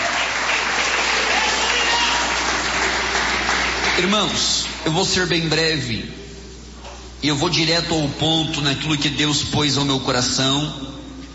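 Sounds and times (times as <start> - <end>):
audience clapping to glorify Jesus: 0.0 - 4.8
speech: 4.0 - 6.2, 7.2 - 11.0.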